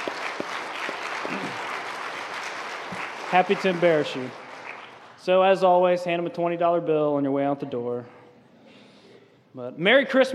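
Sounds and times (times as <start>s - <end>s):
audience applause for an engaged couple: 0.0s - 5.2s
speech: 3.3s - 4.4s, 5.2s - 8.2s, 9.6s - 10.3s.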